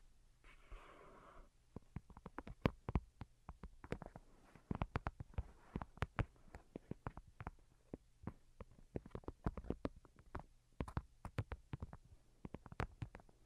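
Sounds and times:
fingertip tapping: 1.8 - 13.2
soft rustling: 3.9 - 7.6.

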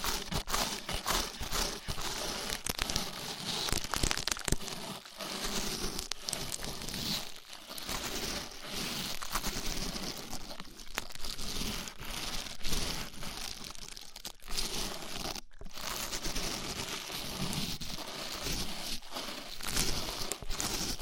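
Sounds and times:
rough ear cleaning crinkling and crackling: 0.0 - 21.0.

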